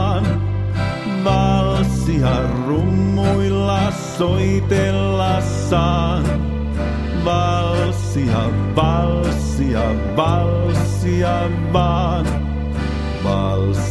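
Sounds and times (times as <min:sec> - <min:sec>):
waltz music with count-in: 0:00.0 - 0:13.9.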